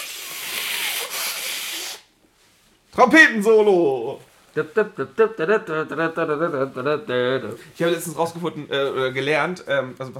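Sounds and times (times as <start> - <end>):
person blowing nose: 0.0 - 2.1
speech: 3.0 - 10.1.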